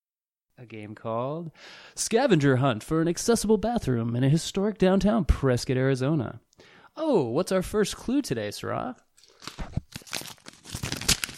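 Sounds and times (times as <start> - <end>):
speech: 0.6 - 9.7
paper crinkling and tearing as a loud envelope is opened: 9.2 - 11.3.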